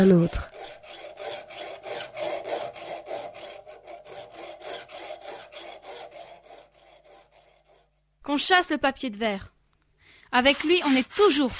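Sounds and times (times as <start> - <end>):
speech: 0.0 - 0.8, 8.3 - 9.5, 10.3 - 11.5
metal file rasping against wood: 0.0 - 8.0, 10.4 - 11.5.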